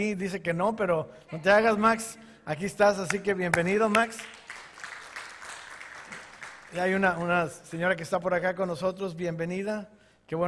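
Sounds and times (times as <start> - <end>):
speech: 0.0 - 4.5, 6.7 - 10.4
audience applause: 3.9 - 7.4.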